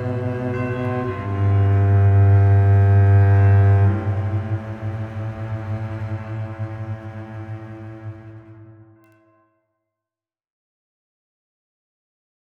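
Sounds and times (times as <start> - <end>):
cello: 0.0 - 9.2.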